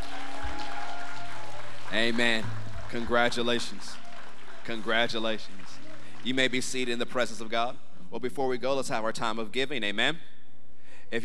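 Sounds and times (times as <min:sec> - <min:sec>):
audience cheering and applauding: 0:00.0 - 0:07.4
speech: 0:01.9 - 0:04.0, 0:04.7 - 0:05.6, 0:06.2 - 0:10.3.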